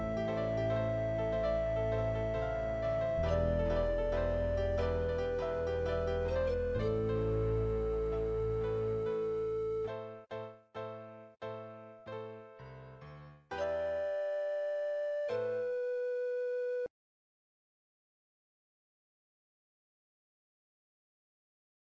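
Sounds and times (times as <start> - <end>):
short pan flute melody: 0.0 - 10.0, 13.6 - 16.9.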